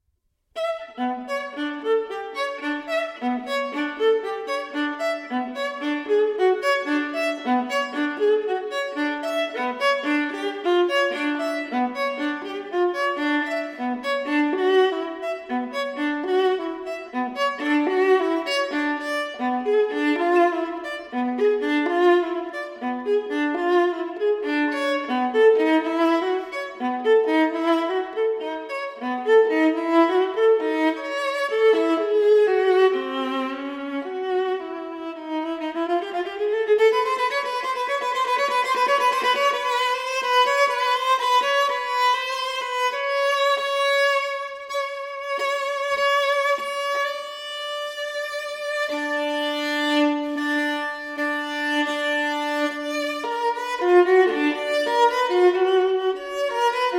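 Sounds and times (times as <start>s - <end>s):
solo viola playing a sonata: 0.5s - 56.9s.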